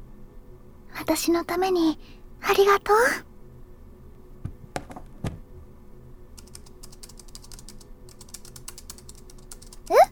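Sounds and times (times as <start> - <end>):
speech: 1.0 - 3.3
typing on a laptop keyboard: 6.4 - 10.1.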